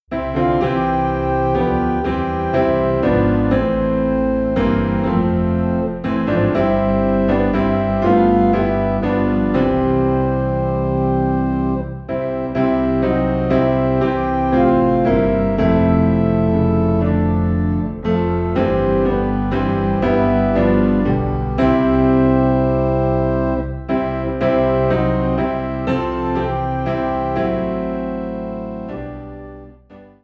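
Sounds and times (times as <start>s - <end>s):
low piano in C: 0.0s - 30.2s
low organ in C: 0.1s - 30.2s.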